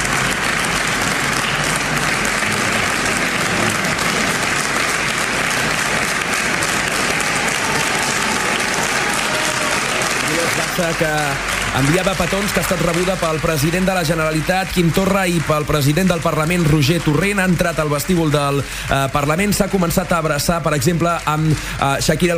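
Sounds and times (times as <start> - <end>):
applause in parliament vestibule: 0.0 - 22.3
speech: 10.8 - 22.3.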